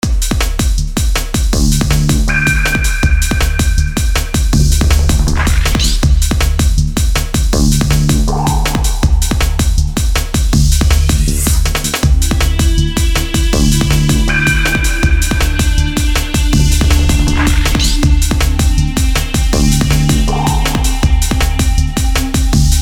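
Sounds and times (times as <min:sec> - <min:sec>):
bass: 0:00.0 - 0:22.8.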